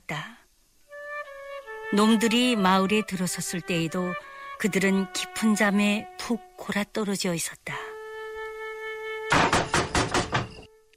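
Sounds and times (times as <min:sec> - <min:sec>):
faint steady hum: 0:00.0 - 0:10.9
speech: 0:01.9 - 0:07.8
loud knocking on a door: 0:09.3 - 0:10.6.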